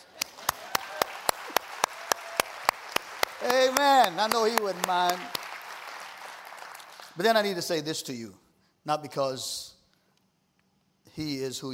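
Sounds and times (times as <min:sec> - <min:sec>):
rhythmic audience clapping: 0:00.0 - 0:07.7
speech: 0:03.4 - 0:05.4, 0:07.2 - 0:09.7, 0:11.2 - 0:11.7.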